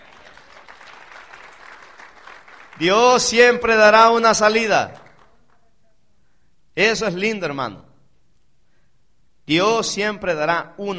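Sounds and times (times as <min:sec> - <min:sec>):
congregation applauding during a church sermon: 0:00.0 - 0:05.8
speech: 0:02.8 - 0:05.0, 0:06.8 - 0:07.8, 0:09.5 - 0:10.9.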